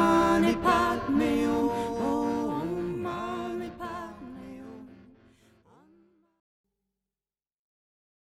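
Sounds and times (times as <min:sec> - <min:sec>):
mantra chanting: 0:00.0 - 0:06.1.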